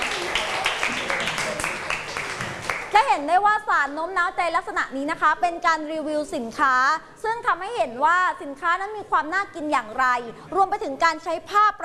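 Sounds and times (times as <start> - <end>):
applause for two student groups: 0.0 - 3.0
speech: 3.1 - 11.8.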